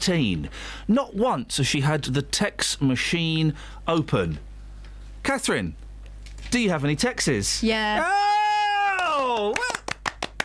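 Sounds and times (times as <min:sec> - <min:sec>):
speech: 0:00.0 - 0:04.5, 0:05.2 - 0:05.8, 0:06.5 - 0:08.3, 0:09.4 - 0:09.8
patronising hand clapping: 0:08.8 - 0:10.4.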